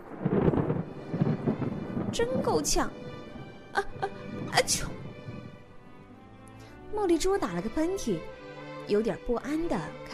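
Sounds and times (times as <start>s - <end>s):
loud thunderclap: 0.0s - 6.1s
speech: 2.2s - 3.1s, 3.7s - 5.0s, 6.9s - 10.1s.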